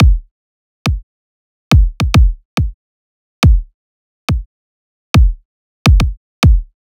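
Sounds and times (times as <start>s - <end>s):
riddim kick drum loop: 0.0s - 0.3s, 1.7s - 2.8s, 3.4s - 3.7s, 5.2s - 6.8s.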